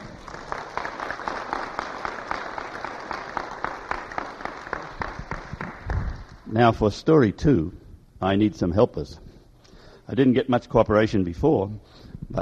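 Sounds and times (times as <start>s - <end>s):
audience clapping: 0.0s - 6.5s
speech: 6.5s - 9.2s, 10.1s - 12.3s.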